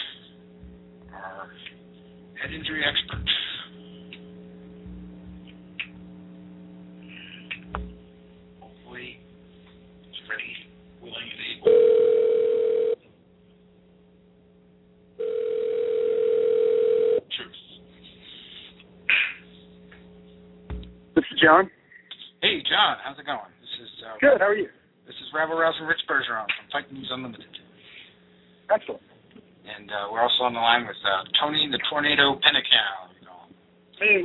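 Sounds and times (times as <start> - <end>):
constant hum: 0.0 - 34.2
speech: 1.2 - 1.8, 2.4 - 3.5, 21.5 - 21.8, 22.8 - 23.5, 24.1 - 27.6, 28.7 - 29.1, 29.8 - 33.1, 34.0 - 34.2
phone line dialing clicks and tones: 11.7 - 13.0, 15.2 - 17.2.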